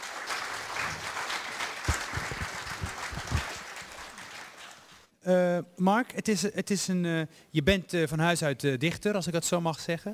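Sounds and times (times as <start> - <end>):
audience applause: 0.0 - 5.1
speech: 5.2 - 10.1.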